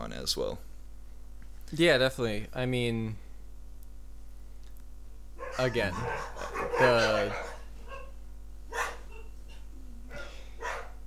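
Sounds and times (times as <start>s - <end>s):
low hum: 0.0s - 11.0s
speech: 0.2s - 0.7s, 1.7s - 3.2s, 5.6s - 7.5s
pet dogs barking: 5.4s - 11.0s.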